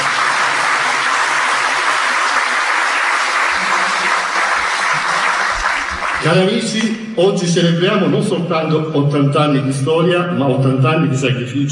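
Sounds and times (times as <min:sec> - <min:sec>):
audience applause: 0:00.0 - 0:06.9
speech: 0:06.3 - 0:11.7.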